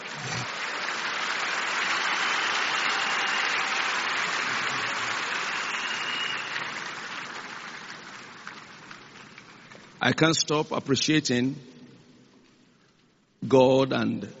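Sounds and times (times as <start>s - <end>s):
many hands clapping: 0.0s - 10.0s
speech: 10.0s - 11.7s, 13.5s - 14.3s.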